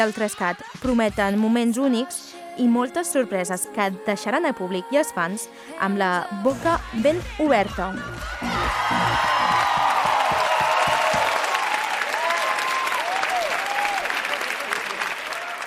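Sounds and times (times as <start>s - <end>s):
speech: 0.0s - 10.0s
audience applause: 8.2s - 15.6s.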